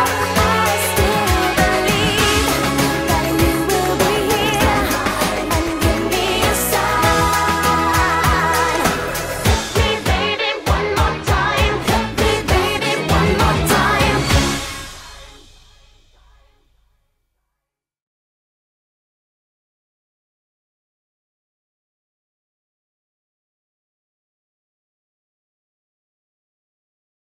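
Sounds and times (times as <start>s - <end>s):
jazz music: 0.0s - 10.5s, 11.6s - 16.6s.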